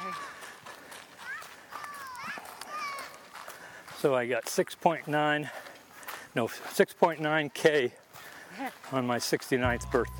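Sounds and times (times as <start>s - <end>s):
footsteps on a gravel trail: 0.0s - 10.1s
speech: 4.0s - 5.7s, 6.3s - 10.1s.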